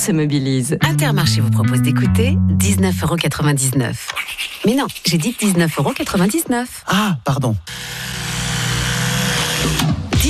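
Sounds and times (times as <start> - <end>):
speech: 0.0 - 8.2, 9.6 - 10.0
electric toothbrush buzzing: 7.7 - 10.0.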